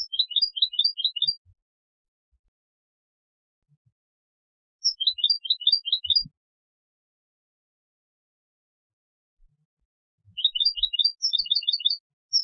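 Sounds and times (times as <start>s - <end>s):
European goldfinch Carduelis carduelis twittering: 0.0s - 1.4s, 4.8s - 6.2s, 10.4s - 12.4s.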